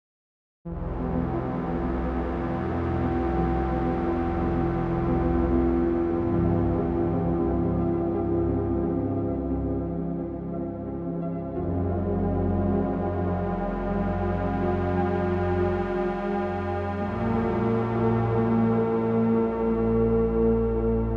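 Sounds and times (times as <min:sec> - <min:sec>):
Massive synthesizer: 0:00.7 - 0:21.1.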